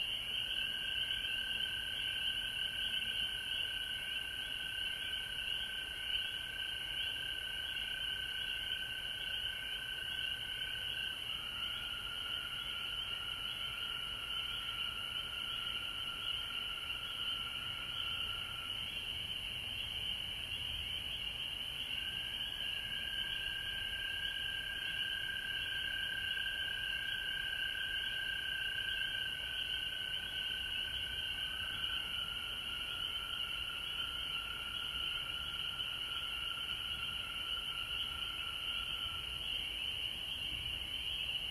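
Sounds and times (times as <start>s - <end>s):
frogs chorusing high-pitched trills: 0.0s - 41.5s.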